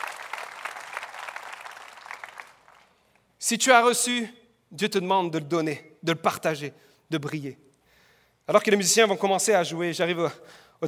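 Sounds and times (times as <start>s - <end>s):
audience applauding: 0.0s - 3.0s
speech: 3.4s - 7.6s, 8.5s - 10.8s.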